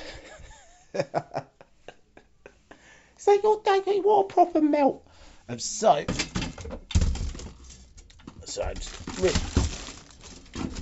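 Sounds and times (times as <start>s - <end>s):
speech: 0.9s - 1.5s, 3.2s - 6.3s, 8.6s - 9.6s
objects clunking while rearranging a cupboard: 6.0s - 10.8s.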